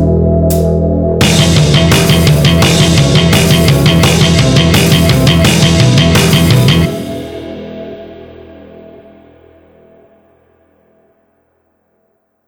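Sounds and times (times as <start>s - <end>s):
neoclassical metal backing track: 0.0s - 9.0s
neoclassical metal guitar licks: 1.2s - 8.8s.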